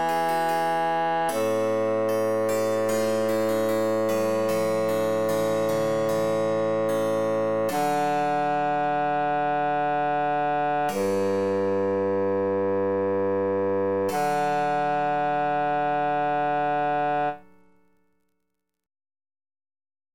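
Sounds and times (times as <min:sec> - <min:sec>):
emphasized bass line: 0:00.0 - 0:17.4.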